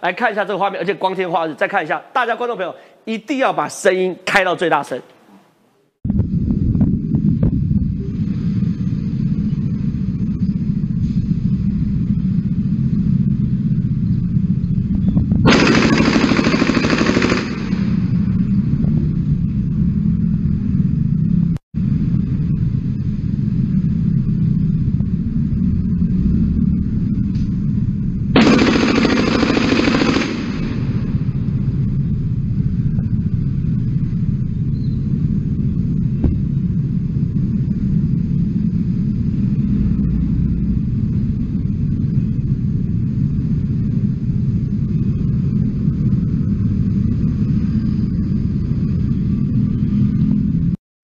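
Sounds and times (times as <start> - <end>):
speech: 0.0 - 5.2
low rumble of street traffic: 6.1 - 50.8
machine gun fire in city street: 15.5 - 18.1, 28.4 - 31.1.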